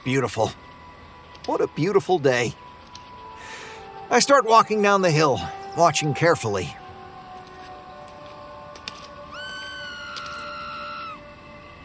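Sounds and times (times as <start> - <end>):
speech: 0.0 - 0.7, 1.5 - 2.6, 4.1 - 6.8
person screaming: 9.3 - 11.2.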